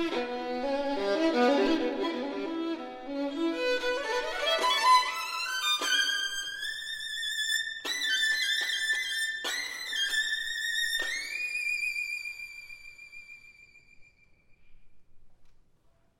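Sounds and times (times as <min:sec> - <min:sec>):
duo for violin and cello: 0:00.0 - 0:12.7.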